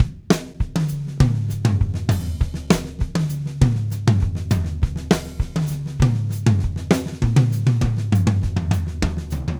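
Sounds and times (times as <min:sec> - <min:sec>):
drum kit solo: 0:00.0 - 0:09.5.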